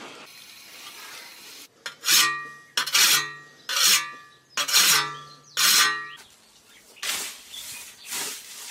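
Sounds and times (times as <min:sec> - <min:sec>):
whetstone sharpening a scythe blade: 0:01.8 - 0:06.1.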